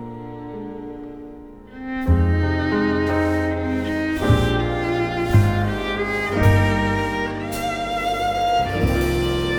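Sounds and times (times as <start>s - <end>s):
big band jazz ballad: 1.9s - 9.5s.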